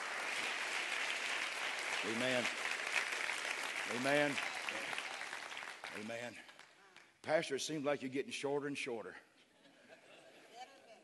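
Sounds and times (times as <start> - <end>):
audience clapping hands: 0.0 - 7.4
speech: 2.0 - 2.6, 3.9 - 5.0, 6.0 - 6.5, 7.2 - 9.3.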